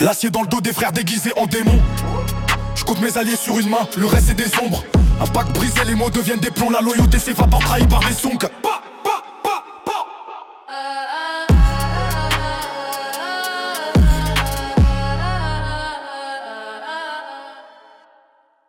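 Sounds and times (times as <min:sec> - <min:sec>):
drill rap: 0:00.0 - 0:10.3, 0:11.5 - 0:15.6.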